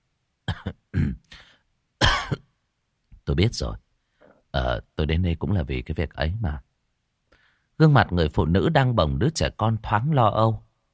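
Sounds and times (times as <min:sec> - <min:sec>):
young man coughing and clearing his throat: 0:00.5 - 0:02.6
speech: 0:03.4 - 0:03.8, 0:04.5 - 0:06.7, 0:07.8 - 0:10.6.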